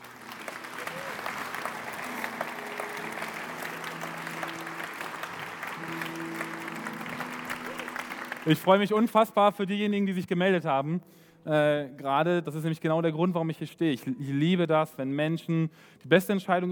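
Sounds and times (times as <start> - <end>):
audience applause: 0.0 - 9.3
speech: 8.4 - 16.7.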